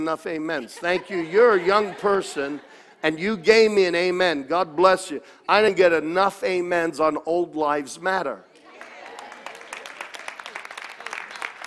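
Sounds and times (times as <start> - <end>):
speech: 0.0 - 8.5
laughter: 0.3 - 4.2
audience clapping: 8.6 - 11.6.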